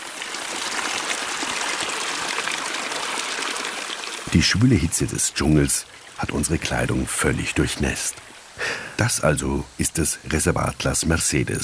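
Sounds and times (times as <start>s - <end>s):
small elongated waterfall pouring from a rock massif: 0.0s - 9.0s
speech: 4.3s - 11.6s.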